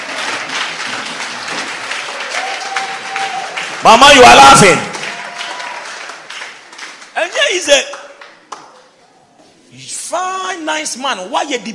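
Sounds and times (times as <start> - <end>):
audience clapping: 0.0 - 9.0
speech: 3.8 - 4.9, 7.6 - 7.9, 10.1 - 11.7.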